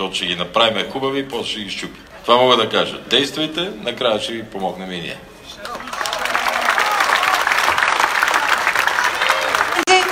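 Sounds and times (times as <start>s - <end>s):
speech: 0.0s - 5.9s
applause: 5.6s - 10.1s.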